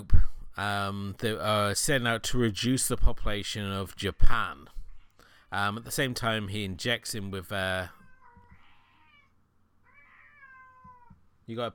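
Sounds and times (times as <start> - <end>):
speech: 0.0 - 4.8, 5.5 - 8.0, 11.5 - 11.7
female cat meowing: 8.0 - 11.2.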